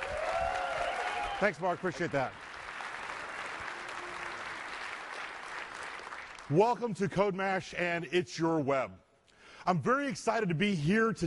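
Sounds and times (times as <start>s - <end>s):
audience at the CodeMash conference clapping: 0.0s - 7.3s
speech: 1.4s - 2.4s, 6.5s - 9.0s, 9.6s - 11.2s.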